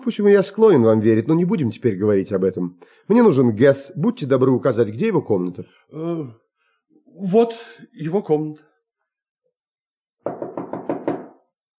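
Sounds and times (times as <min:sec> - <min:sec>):
speech: 0:00.0 - 0:06.4, 0:07.2 - 0:08.7
knocking on a door: 0:10.2 - 0:11.5.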